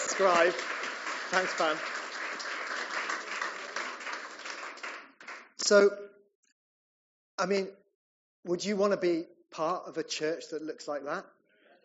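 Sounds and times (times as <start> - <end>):
audience applause: 0.0 - 5.5
speech: 0.2 - 2.0, 5.7 - 6.1, 7.4 - 7.8, 8.4 - 11.4.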